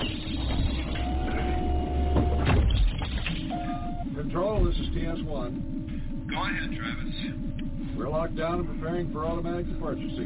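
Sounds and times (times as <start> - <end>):
spacecraft hatch mechanism whirring and grinding as it is closed: 0.0 - 5.8
continuous low hum: 0.0 - 10.2
speech: 4.4 - 10.2.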